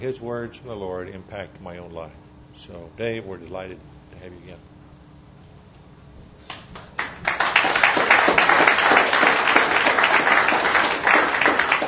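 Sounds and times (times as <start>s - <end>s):
speech: 0.0s - 4.7s
audience applause: 6.8s - 11.8s.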